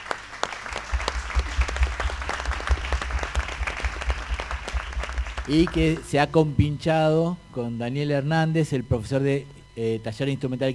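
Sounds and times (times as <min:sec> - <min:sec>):
audience applause: 0:00.0 - 0:06.1
speech: 0:05.5 - 0:10.7.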